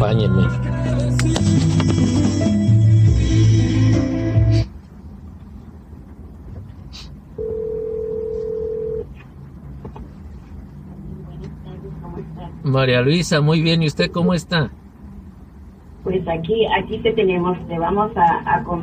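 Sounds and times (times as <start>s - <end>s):
speech: 0.0s - 2.7s, 12.7s - 14.8s, 16.0s - 18.8s
music: 0.1s - 4.7s
steady single-pitched telephone tone of a call to a radio station: 7.4s - 9.1s.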